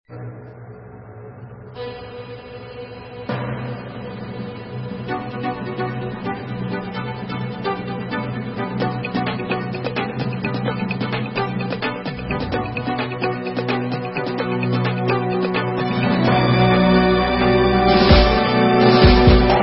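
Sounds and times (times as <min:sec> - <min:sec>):
instrumental Israeli dance music: 0:05.4 - 0:16.6, 0:17.2 - 0:19.6.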